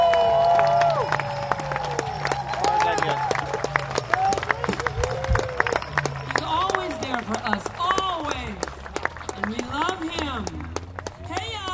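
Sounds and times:
cheering and whoops: 0:00.0 - 0:07.3
crowd applause: 0:00.0 - 0:11.7.

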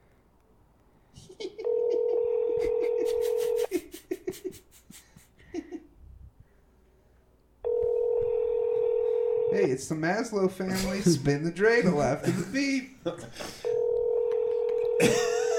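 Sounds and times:
laughter: 0:01.2 - 0:05.9, 0:10.7 - 0:13.4, 0:14.4 - 0:15.5
buzzy telephone ring tone: 0:01.6 - 0:03.7, 0:07.6 - 0:09.8, 0:13.6 - 0:15.5
speech: 0:09.9 - 0:13.6.

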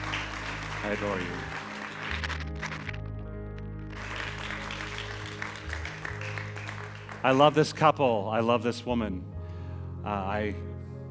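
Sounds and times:
audience applause: 0:00.0 - 0:03.1, 0:03.8 - 0:07.8
speech: 0:00.8 - 0:01.6, 0:07.2 - 0:09.3, 0:10.0 - 0:10.7.

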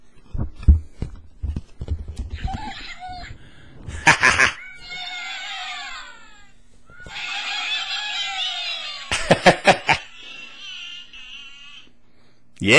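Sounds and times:
Angry Birds toy making bird noises: 0:02.4 - 0:03.4, 0:04.6 - 0:09.4, 0:10.0 - 0:12.0
laughter: 0:03.9 - 0:04.6, 0:07.1 - 0:11.9.

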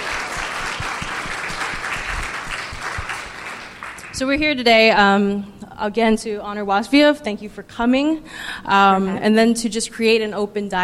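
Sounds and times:
audience applause: 0:00.0 - 0:04.2
speech: 0:04.2 - 0:10.8.

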